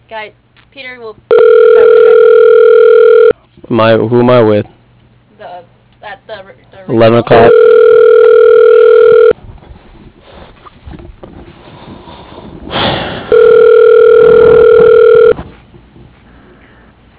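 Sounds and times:
speech: 0.1 - 2.5, 3.6 - 4.8, 5.6 - 7.8
telephone ringing on an outgoing call: 1.3 - 3.3, 7.3 - 9.4, 13.3 - 15.4.

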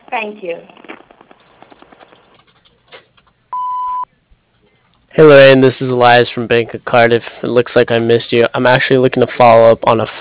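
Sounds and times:
speech: 0.1 - 0.8, 5.2 - 10.1
answering machine beep at a clothing business: 3.6 - 4.1.

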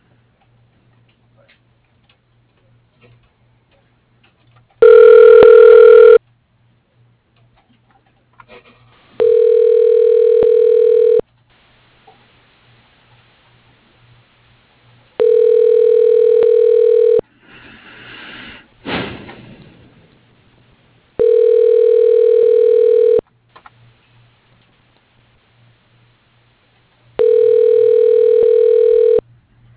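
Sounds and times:
electronic ringback tone on an outgoing phone call: 4.8 - 6.2, 9.2 - 11.2, 15.2 - 17.2, 21.2 - 23.2, 27.2 - 29.2.

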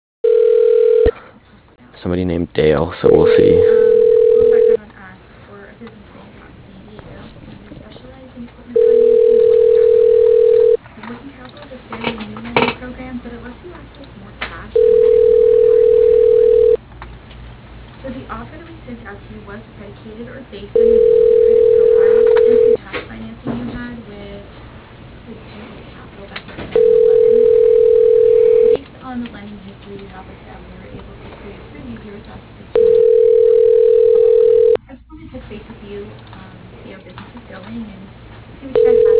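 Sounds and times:
phone ringback tone on an unanswered call: 0.2 - 1.1, 3.1 - 4.8, 8.8 - 10.8, 14.8 - 16.8, 20.8 - 22.8, 26.8 - 28.8, 32.8 - 34.8, 38.8 - 39.1
speech: 2.1 - 3.8
faint murmur: 4.2 - 16.8, 18.0 - 39.1.

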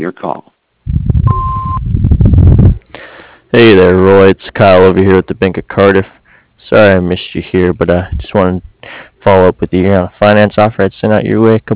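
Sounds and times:
speech: 0.0 - 1.4, 3.5 - 11.7
answering machine beep: 1.3 - 1.8.

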